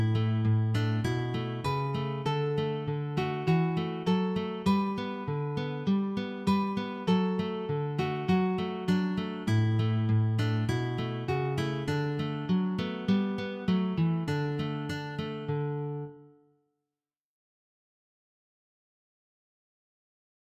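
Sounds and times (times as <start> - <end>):
two guitars playing: 0.0 - 16.2.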